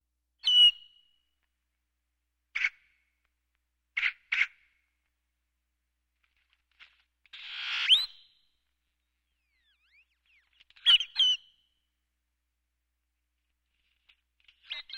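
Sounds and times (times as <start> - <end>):
Great-tailed grackle calling with swooping whistles and harsh rattling chatter: 0.4 - 1.2, 7.3 - 11.8, 13.9 - 14.9.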